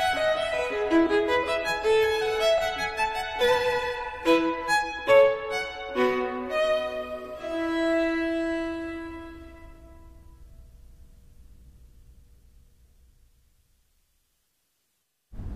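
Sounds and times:
violin: 0.0s - 10.4s.

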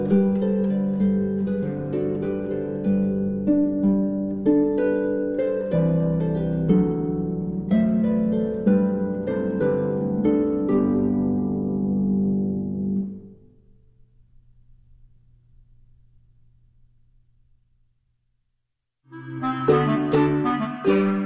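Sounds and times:
short fantasy on a traditional Neapolitan carol for harp: 0.0s - 13.5s, 19.1s - 21.2s.

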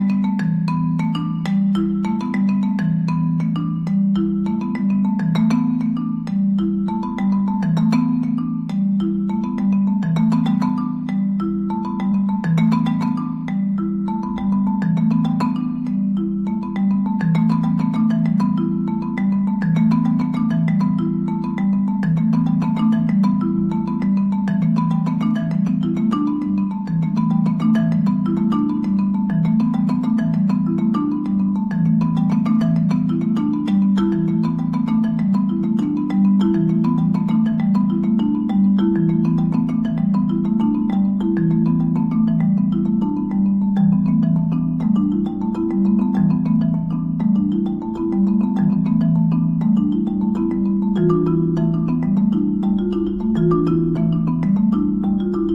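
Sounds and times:
marimbas: 0.0s - 55.5s.

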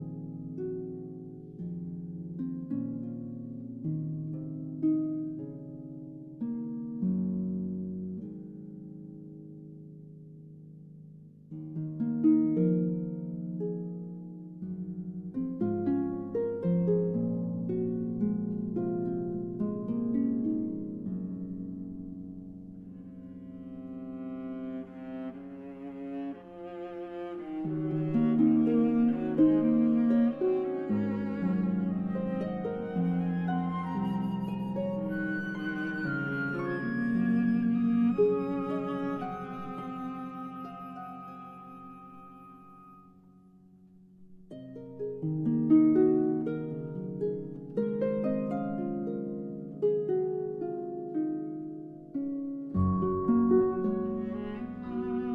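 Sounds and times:
harp concerto lullaby: 0.0s - 55.3s.

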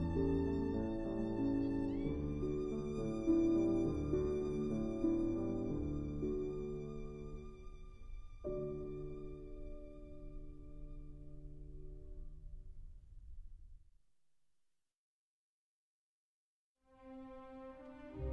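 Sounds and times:
violin: 0.0s - 11.8s, 16.9s - 18.3s
piano: 0.0s - 13.8s, 16.9s - 18.3s.

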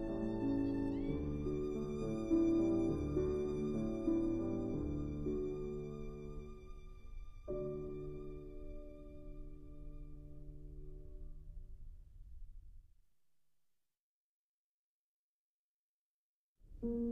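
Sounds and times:
violin: 0.0s - 11.0s
piano: 0.0s - 12.9s, 16.6s - 17.0s.

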